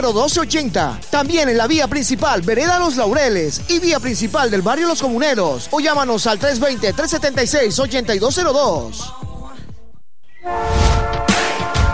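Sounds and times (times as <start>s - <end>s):
speech: 0.0s - 9.2s
train horn: 10.4s - 11.9s.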